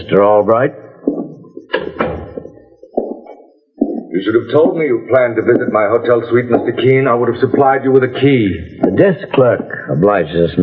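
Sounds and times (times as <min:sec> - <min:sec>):
speech: 0:00.0 - 0:00.8, 0:04.2 - 0:10.6
door opening: 0:01.1 - 0:03.4.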